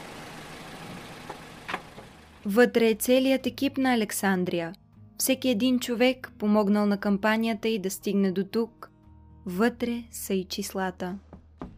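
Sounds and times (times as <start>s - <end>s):
car stopping: 0.0s - 2.6s
speech: 2.4s - 8.8s, 9.5s - 11.3s.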